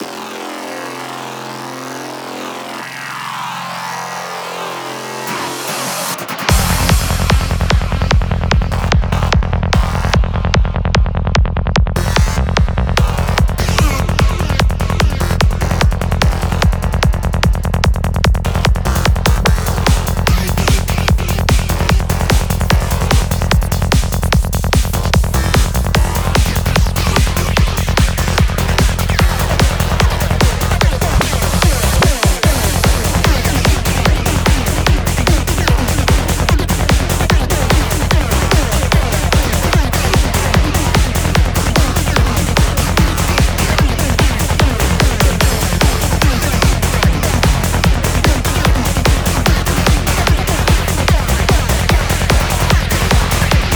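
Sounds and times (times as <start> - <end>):
trance dance music: 0.0 - 53.7.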